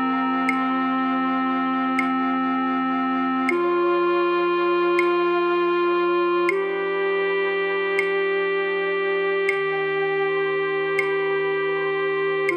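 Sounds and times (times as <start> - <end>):
alto flute in a flute orchestra: 0.0 - 12.5.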